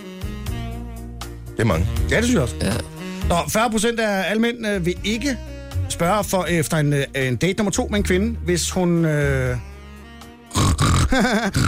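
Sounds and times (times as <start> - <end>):
speech: 1.6 - 9.7, 10.5 - 11.6
voice imitating pig grunting and squealing: 2.2 - 3.1, 10.5 - 11.6.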